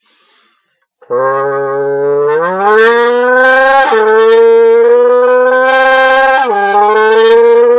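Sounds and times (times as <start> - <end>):
voice imitating a high-revving Honda VTEC engine: 1.1 - 7.7.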